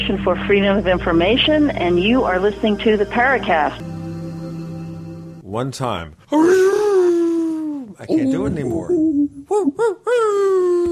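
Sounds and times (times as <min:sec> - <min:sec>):
speech: 0:00.0 - 0:03.9, 0:05.5 - 0:06.8, 0:08.0 - 0:10.8
person imitating a wolf howl: 0:06.3 - 0:10.8.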